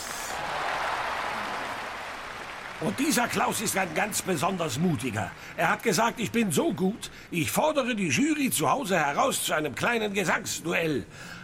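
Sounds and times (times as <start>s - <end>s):
audience applause: 0.0s - 7.1s
speech: 2.8s - 11.4s.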